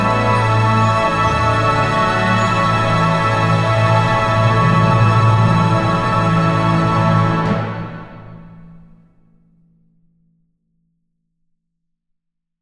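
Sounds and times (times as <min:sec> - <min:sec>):
orchestral magic and mystery music: 0:00.0 - 0:09.2.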